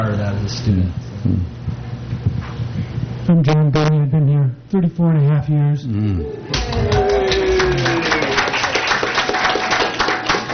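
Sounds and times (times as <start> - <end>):
speech: 0.0 - 2.3, 3.3 - 7.1
applause: 6.5 - 10.5.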